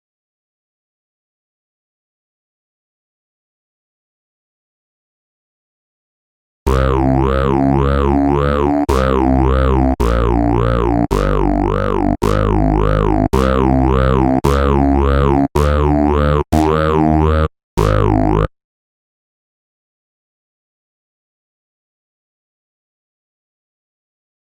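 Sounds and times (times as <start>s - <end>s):
synth bass stem: 6.7s - 18.5s.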